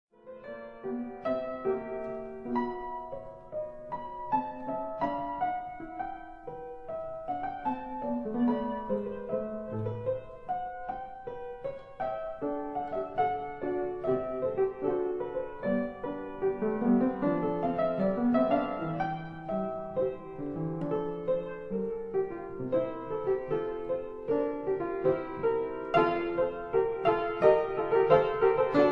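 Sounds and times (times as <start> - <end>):
piano etude in D minor: 0.1 - 28.9.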